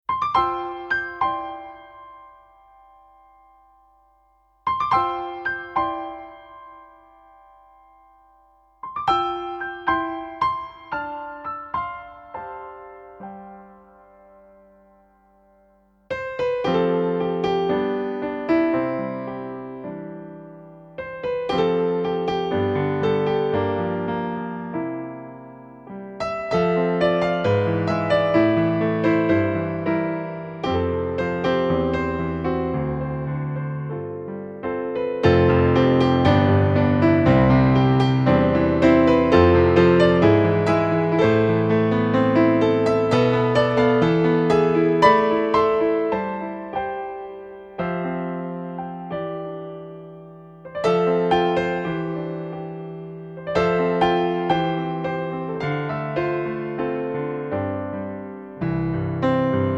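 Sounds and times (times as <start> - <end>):
piano: 0.0 - 59.7.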